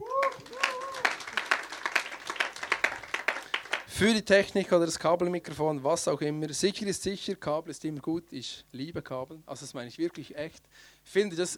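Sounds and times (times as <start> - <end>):
vocal cheer: 0.0 - 1.4
small group clapping: 0.0 - 4.0
speech: 4.0 - 11.5.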